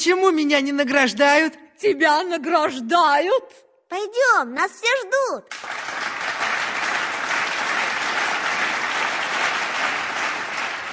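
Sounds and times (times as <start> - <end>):
speech: 0.0 - 5.8
loud sustained applause from a large crowd: 5.5 - 10.9.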